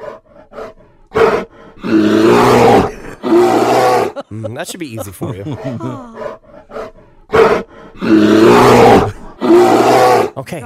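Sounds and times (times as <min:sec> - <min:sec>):
grizzly bear roaring in conflict: 0:00.0 - 0:04.2, 0:06.2 - 0:10.4
laughter: 0:03.8 - 0:06.3
speech: 0:04.3 - 0:06.2, 0:10.4 - 0:10.6.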